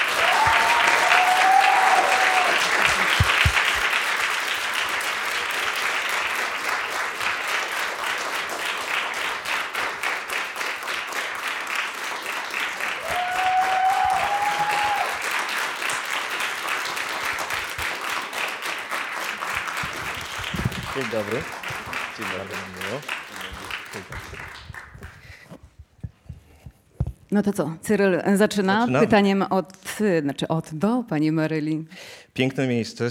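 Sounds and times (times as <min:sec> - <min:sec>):
audience applause: 0:00.0 - 0:25.4
speech: 0:21.2 - 0:21.5, 0:27.4 - 0:33.0.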